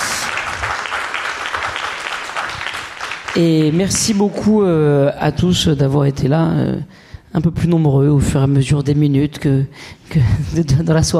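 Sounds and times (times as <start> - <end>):
sustained audience applause: 0.0 - 4.5
speech: 3.4 - 11.1.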